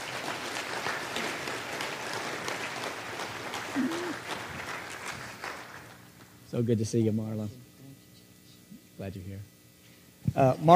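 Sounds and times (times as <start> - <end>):
audience applause welcoming guests onto a stage: 0.0 - 6.1
speech: 6.6 - 7.7, 9.0 - 9.5, 10.3 - 10.7.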